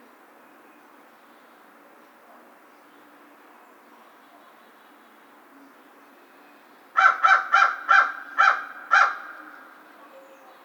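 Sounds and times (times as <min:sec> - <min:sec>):
American crow cawing: 0:07.0 - 0:09.7.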